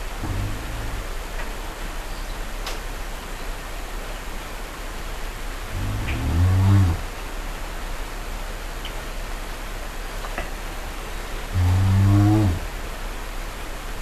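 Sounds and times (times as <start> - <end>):
brown bear giving a low droning moan: 0.0 - 1.2, 5.7 - 7.1, 11.5 - 12.8.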